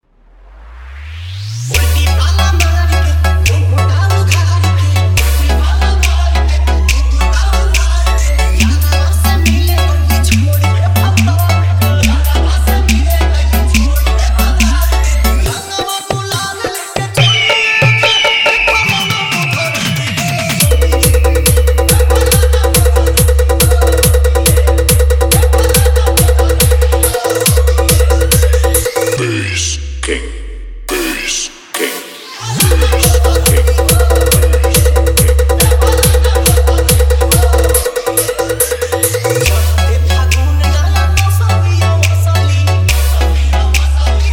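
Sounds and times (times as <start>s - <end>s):
Bhojpuri Holi DJ mix song: 0.6s - 44.3s.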